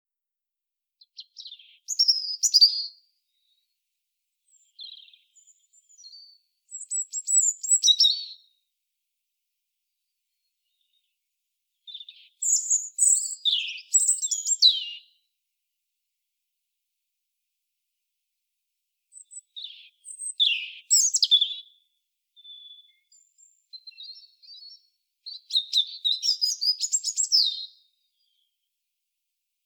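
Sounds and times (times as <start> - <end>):
European robin song: 1.0 - 3.8, 4.4 - 8.6, 9.9 - 15.4, 19.1 - 28.6.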